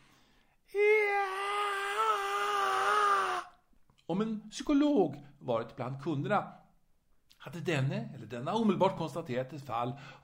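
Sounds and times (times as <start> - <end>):
high-pitched siren-like wailing scream: 0.8 - 3.6
speech: 4.1 - 6.6, 7.4 - 10.2.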